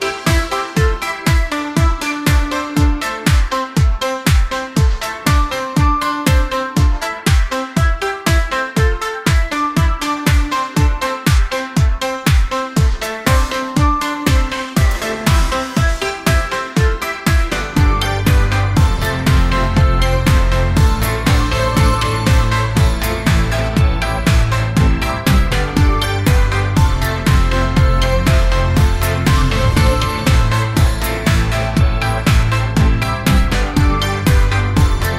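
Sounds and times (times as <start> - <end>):
dance pop music: 0.0 - 35.1.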